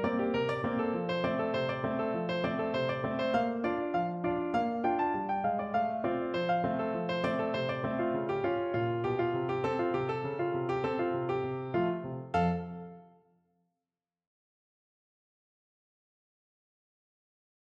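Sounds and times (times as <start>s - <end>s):
ragtime piano: 0.0s - 13.0s.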